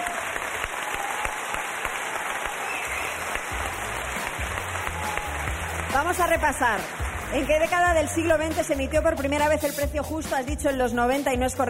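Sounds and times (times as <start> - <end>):
applause: 0.0 - 8.4
speech: 6.0 - 11.6.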